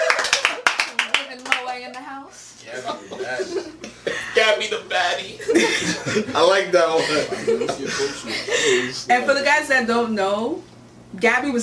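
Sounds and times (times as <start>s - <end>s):
audience clapping in a steady rhythmic beat: 0.0s - 2.1s
laughter: 2.7s - 9.1s
speech: 3.3s - 11.6s.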